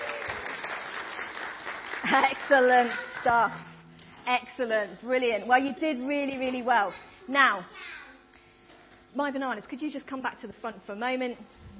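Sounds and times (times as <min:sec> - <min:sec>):
audience applause: 0:00.0 - 0:03.6
speech: 0:02.0 - 0:03.7, 0:04.3 - 0:08.0, 0:09.2 - 0:11.7.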